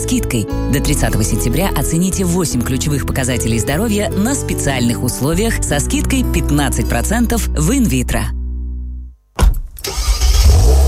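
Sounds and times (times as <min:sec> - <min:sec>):
speech: 0:00.0 - 0:08.4
car engine cranking, catching and idling: 0:09.8 - 0:10.8.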